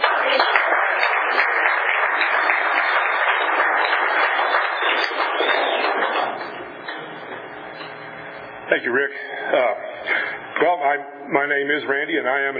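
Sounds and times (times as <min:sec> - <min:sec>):
Tulare County audience applauding: 0:00.0 - 0:07.8
speech: 0:08.7 - 0:09.8, 0:10.8 - 0:12.5.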